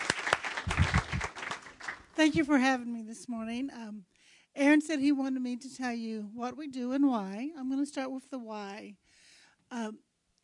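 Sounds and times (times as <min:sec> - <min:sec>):
audience at a morning gathering applauding to welcome a guest speaker: 0:00.0 - 0:02.2
speech: 0:02.2 - 0:09.0, 0:09.7 - 0:10.0.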